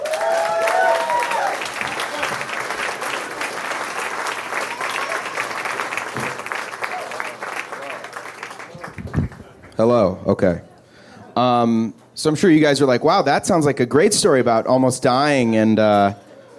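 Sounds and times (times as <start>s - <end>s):
audience applause for a comedian at a live comedy show: 0.0s - 9.8s
speech: 9.8s - 10.7s, 11.4s - 16.2s.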